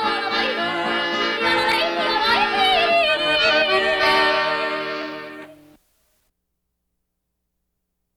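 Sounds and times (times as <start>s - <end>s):
female Alpine yodelers singing a yodeling song: 0.0s - 5.6s.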